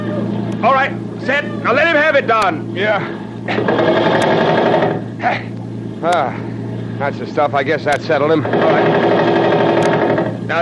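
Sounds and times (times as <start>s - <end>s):
speech: 0.6s - 4.4s, 5.2s - 9.4s, 10.5s - 10.6s
machine gun firing from a boat: 3.5s - 5.1s, 8.4s - 10.6s.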